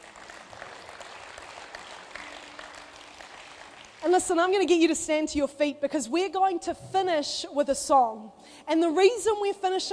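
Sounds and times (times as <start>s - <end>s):
audience clapping: 0.0s - 4.6s
speech: 4.0s - 9.9s.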